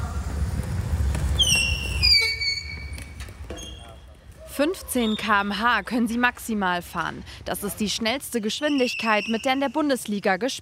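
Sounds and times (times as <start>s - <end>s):
electric wheelchair tyres squeaking on the playing field: 1.1s - 5.5s, 8.5s - 9.8s
speech: 4.6s - 10.6s.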